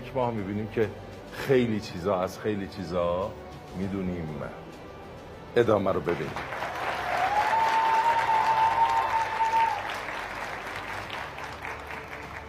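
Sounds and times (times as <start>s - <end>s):
speech: 0.1s - 4.6s, 5.5s - 6.5s
audience applause: 6.3s - 12.4s.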